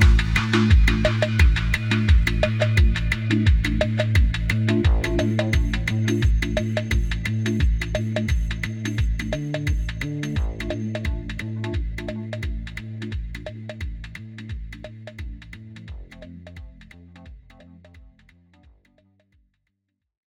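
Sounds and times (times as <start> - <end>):
slow groove music: 0.0 - 13.8.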